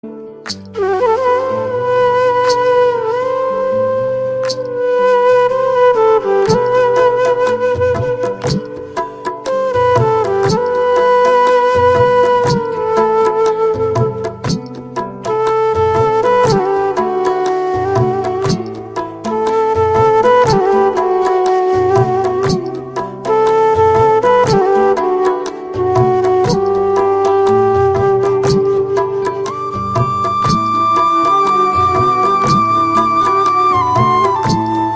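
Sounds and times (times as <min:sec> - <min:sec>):
flute ringtone: 0:00.7 - 0:34.9.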